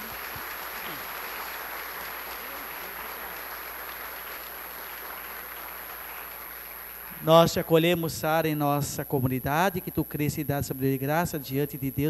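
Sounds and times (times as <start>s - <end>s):
round of applause: 0.0s - 7.3s
speech: 7.2s - 12.0s.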